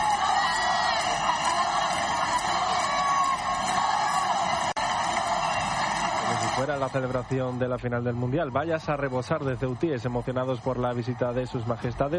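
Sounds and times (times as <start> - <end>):
whoops and high-pitched yells: 0.0 - 6.6
large crowd cheering and shouting greeting arriving royals: 0.0 - 12.1
speech: 6.6 - 12.1.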